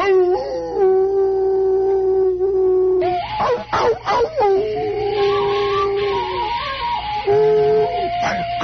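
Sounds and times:
hounds howling and yelping: 0:00.0 - 0:08.6.

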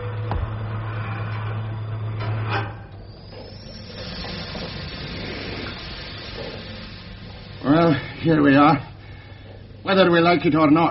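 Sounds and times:
low mechanical hum of air pumping into a spacecraft airlock: 0:00.0 - 0:10.9
air hissing into a spacecraft airlock: 0:03.1 - 0:10.9
speech: 0:08.2 - 0:08.9, 0:09.9 - 0:10.9.

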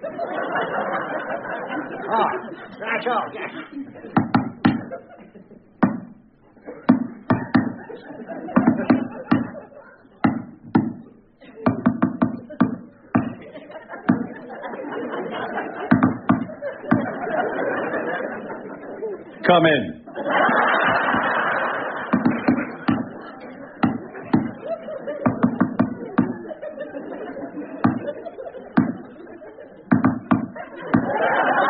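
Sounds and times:
laughter: 0:00.0 - 0:31.6
speech: 0:02.1 - 0:04.2, 0:19.5 - 0:20.0
knocking on a door in code: 0:04.2 - 0:04.9, 0:08.6 - 0:09.6, 0:10.2 - 0:11.0, 0:11.7 - 0:13.4, 0:15.9 - 0:17.1, 0:22.1 - 0:23.1, 0:23.8 - 0:24.6, 0:25.2 - 0:26.4, 0:27.8 - 0:28.0, 0:29.9 - 0:31.1.

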